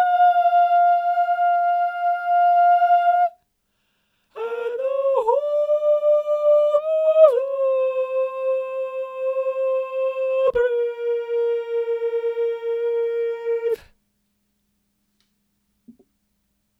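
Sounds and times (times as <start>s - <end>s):
choir singing high soprano: 0.0s - 3.4s, 4.4s - 13.9s.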